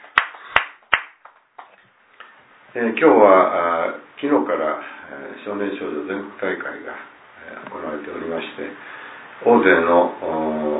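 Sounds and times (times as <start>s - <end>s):
hand claps: 0.0s - 1.8s
speech: 2.8s - 10.7s.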